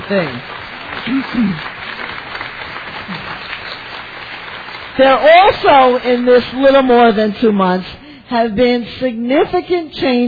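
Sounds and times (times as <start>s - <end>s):
audience applause: 0.0s - 6.3s
speech: 0.1s - 1.8s, 5.0s - 10.2s.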